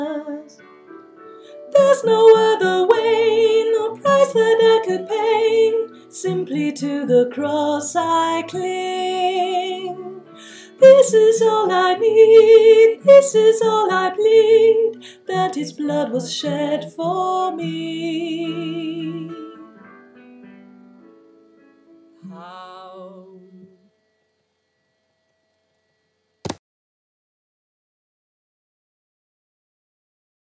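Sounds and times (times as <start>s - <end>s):
soprano singing: 0.0s - 0.8s, 1.4s - 20.1s, 22.2s - 23.9s.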